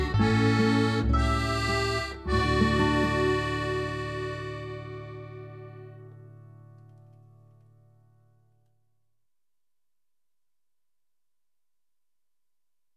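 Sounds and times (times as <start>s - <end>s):
christmas song house music: 0.0s - 7.1s.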